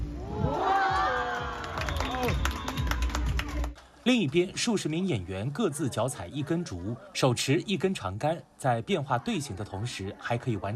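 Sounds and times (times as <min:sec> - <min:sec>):
crowd cheering and shouting: 0:00.0 - 0:03.6
scattered clapping: 0:01.4 - 0:04.4
speech: 0:04.0 - 0:10.7.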